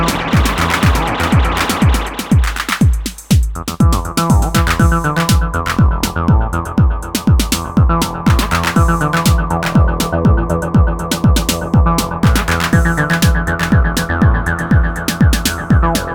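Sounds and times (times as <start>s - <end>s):
Roland T-8 beat machine beat with reverb and delay: 0.0s - 16.1s.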